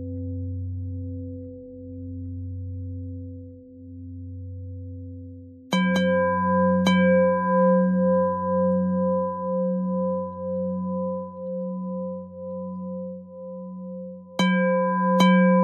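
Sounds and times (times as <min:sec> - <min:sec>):
pentatonic bell melody: 0:05.8 - 0:15.6.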